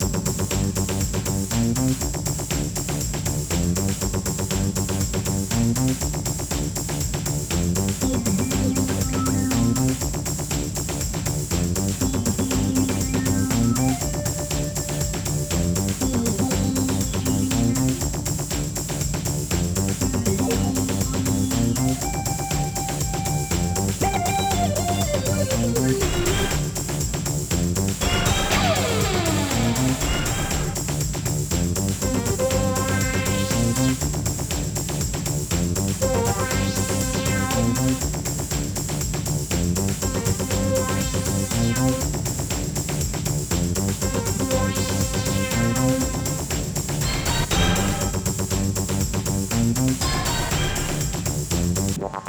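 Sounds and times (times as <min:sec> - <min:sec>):
racing music: 0:00.0 - 0:52.0.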